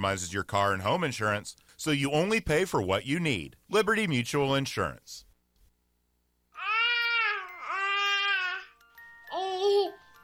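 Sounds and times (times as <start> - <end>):
speech: 0.0 - 5.3
baby babbling: 6.6 - 10.0.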